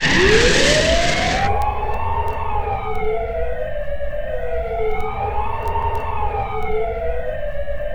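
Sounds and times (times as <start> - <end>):
siren in town: 0.0 - 7.9.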